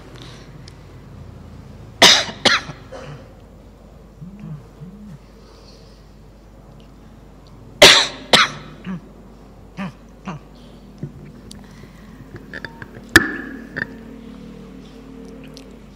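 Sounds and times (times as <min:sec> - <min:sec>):
person coughing: 0:02.0 - 0:03.3, 0:07.8 - 0:09.0.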